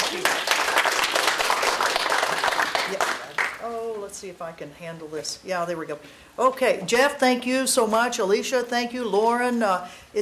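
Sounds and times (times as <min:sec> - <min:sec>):
audience applause welcoming a speaker at a university talk: 0:00.0 - 0:03.6
speech: 0:04.2 - 0:10.2.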